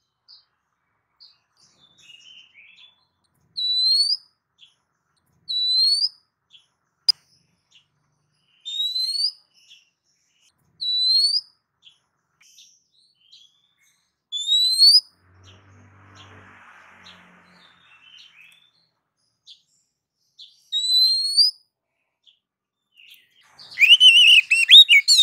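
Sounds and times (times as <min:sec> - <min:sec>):
female oriental magpie-robin calling to a male: 0:03.6 - 0:04.2, 0:05.5 - 0:06.2, 0:08.6 - 0:09.4, 0:10.8 - 0:11.5, 0:14.3 - 0:15.1, 0:20.6 - 0:21.6, 0:23.6 - 0:25.2.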